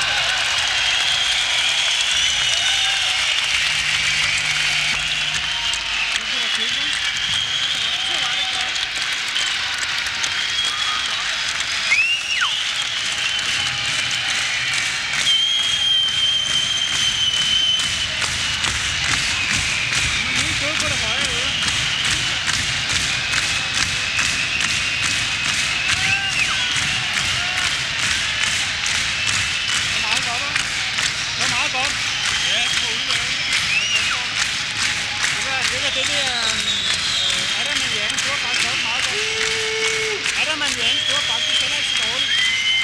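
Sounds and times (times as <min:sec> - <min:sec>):
crowd noise: 0:00.0 - 0:42.8.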